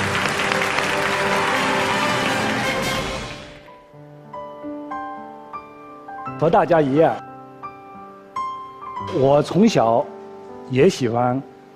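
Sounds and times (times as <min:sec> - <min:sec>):
audience applause: 0:00.0 - 0:03.7
speech: 0:06.4 - 0:07.3, 0:09.0 - 0:10.1, 0:10.7 - 0:11.5.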